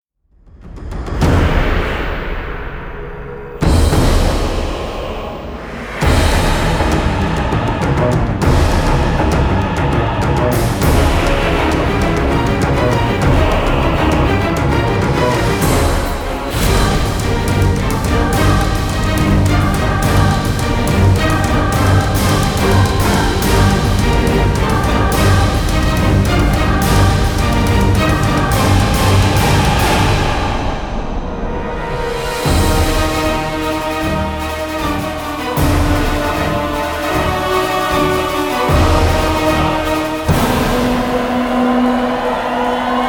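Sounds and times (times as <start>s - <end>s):
battle action trailer music: 0.3s - 43.0s.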